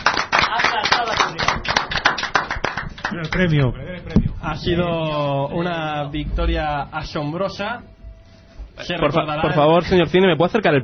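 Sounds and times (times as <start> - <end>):
applause: 0.0 - 3.5
speech: 3.2 - 8.0, 8.8 - 10.8.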